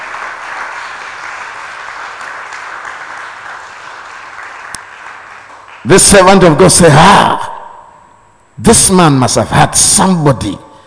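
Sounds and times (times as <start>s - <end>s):
audience clapping: 0.0s - 6.2s
speech: 5.8s - 7.5s, 8.7s - 10.6s.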